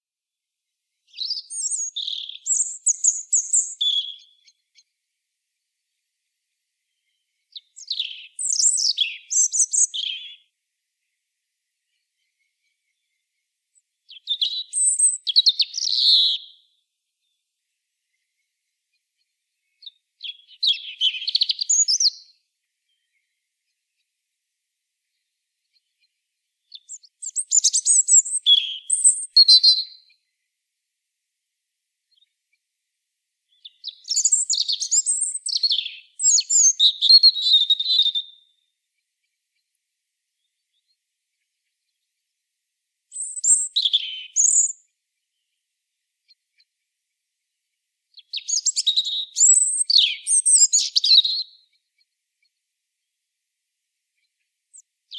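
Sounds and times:
Erithacus rubecula: 1.0s - 5.0s, 6.8s - 11.2s, 11.8s - 17.4s, 18.1s - 24.1s, 25.1s - 30.5s, 33.5s - 38.7s, 43.1s - 45.6s, 48.1s - 52.5s.

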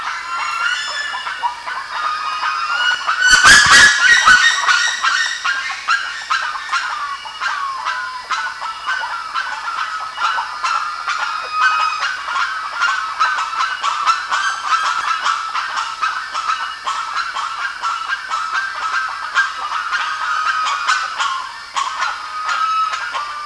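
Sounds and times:
dense flock of birds calling: 0.0s - 23.4s.

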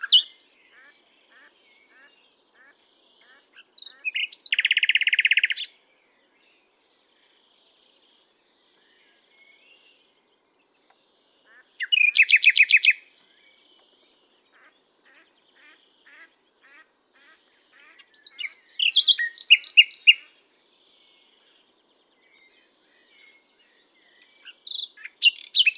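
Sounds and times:
Common nightingale song: 0.0s - 25.7s.

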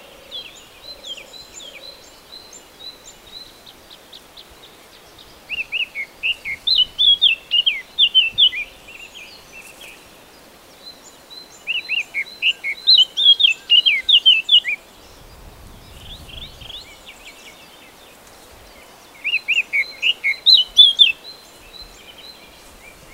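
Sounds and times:
Eurasian blackcap singing: 5.5s - 9.9s, 11.6s - 14.8s, 19.2s - 21.2s.

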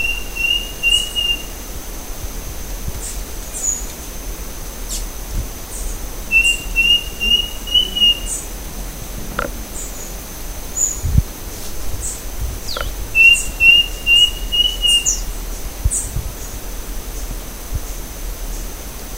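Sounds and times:
bird giving clear high whistled phrases: 0.0s - 1.5s, 6.3s - 8.4s, 13.2s - 15.2s
faint chirps: 0.0s - 1.6s, 5.7s - 15.3s
steady background hiss: 0.0s - 19.1s.

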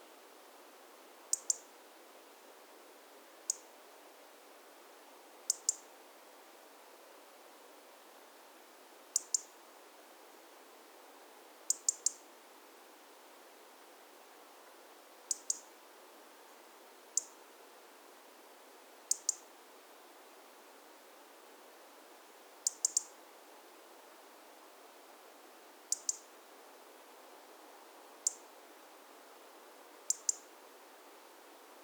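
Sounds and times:
steady background hiss: 0.0s - 31.8s
European robin tick calls: 1.3s - 1.7s, 3.5s - 3.7s, 5.5s - 5.9s, 9.2s - 9.6s, 11.7s - 12.2s, 15.3s - 15.7s, 17.2s - 17.4s, 19.1s - 19.4s, 22.7s - 23.1s, 25.9s - 26.3s, 30.1s - 30.5s.

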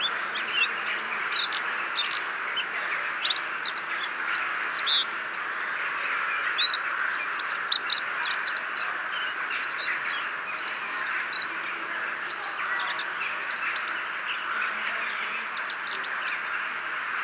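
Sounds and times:
common blackbird chinking calls: 0.0s - 17.2s.

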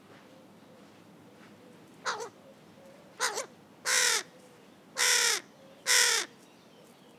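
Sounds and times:
carrion crow cawing: 2.1s - 2.3s, 3.2s - 4.3s, 5.0s - 6.3s.

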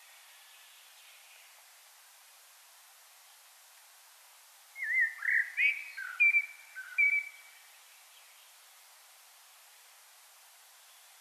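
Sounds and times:
common blackbird singing: 4.8s - 7.6s.

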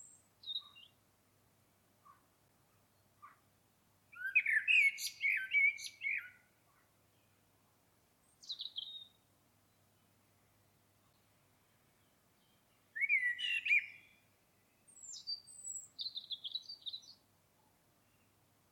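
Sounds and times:
common blackbird song: 0.0s - 1.0s, 4.1s - 6.4s, 8.3s - 9.2s, 12.4s - 14.2s, 14.9s - 17.2s.

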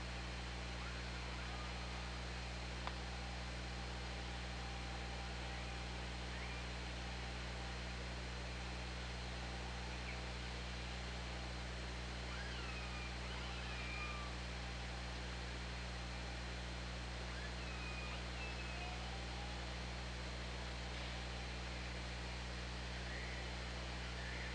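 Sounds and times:
droning hum: 0.0s - 24.5s
orca whistled calls: 6.3s - 6.7s, 12.3s - 14.4s, 17.3s - 19.6s, 23.0s - 24.5s.

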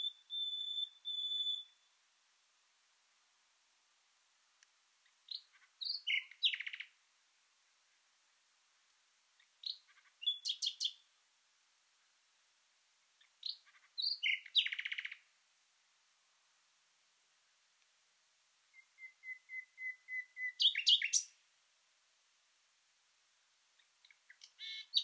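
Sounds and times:
common nightingale song: 0.0s - 2.2s, 4.4s - 15.4s, 16.7s - 21.6s, 23.1s - 25.0s.

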